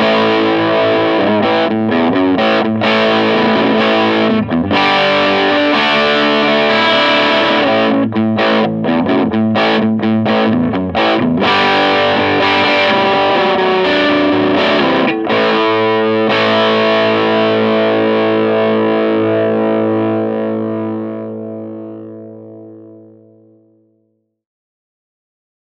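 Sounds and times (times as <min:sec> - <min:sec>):
Supro Delta King 12 combo amplifier with drive: 0:00.0 - 0:24.1.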